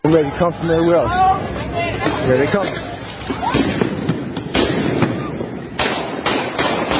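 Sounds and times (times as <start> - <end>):
speech: 0.1 - 1.5, 2.2 - 2.9
gunshots fired at police: 3.3 - 6.9.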